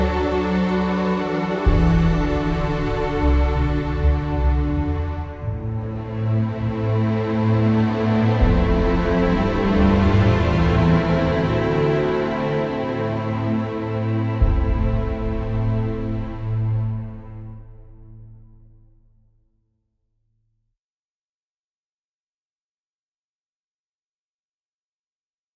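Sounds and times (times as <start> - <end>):
magical forest music: 0.0 - 19.0.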